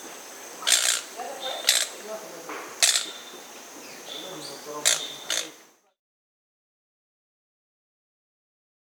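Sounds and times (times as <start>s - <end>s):
Lemon-throated Barbet Eubucco richardsoni calling in Peru: 0.0s - 5.8s.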